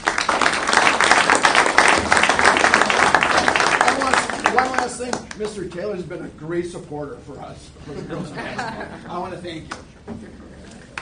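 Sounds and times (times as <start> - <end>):
audience applause: 0.0 - 5.4
speech: 5.0 - 10.5
laughter: 7.8 - 9.5, 10.2 - 10.9.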